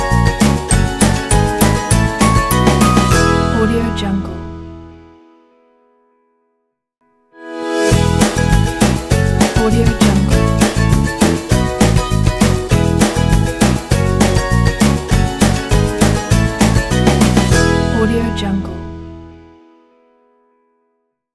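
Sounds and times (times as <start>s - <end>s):
happy ukulele logo tune: 0.0s - 5.0s, 7.5s - 19.3s.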